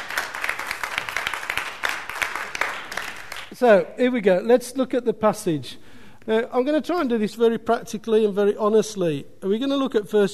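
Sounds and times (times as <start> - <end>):
audience applause: 0.0 - 3.6
speech: 3.6 - 10.3.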